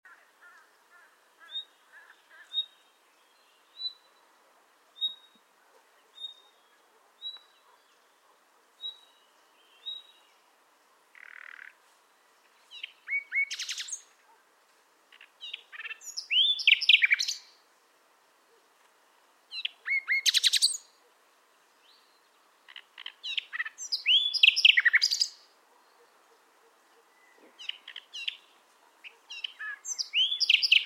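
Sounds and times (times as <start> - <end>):
Luscinia megarhynchos singing: 1.4 - 4.3, 4.9 - 8.1, 8.8 - 10.4, 11.1 - 11.8, 12.4 - 14.1, 15.1 - 17.6, 19.5 - 21.0, 21.8 - 26.2, 27.0 - 30.8.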